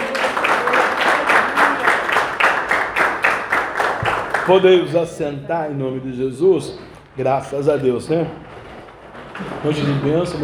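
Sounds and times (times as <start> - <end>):
audience clapping hands in a steady rhythm: 0.0 - 5.2
speech: 4.5 - 8.5, 9.6 - 10.4.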